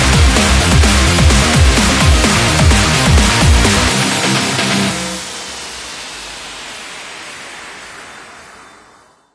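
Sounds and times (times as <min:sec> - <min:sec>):
energetic sport rock music: 0:00.0 - 0:05.7.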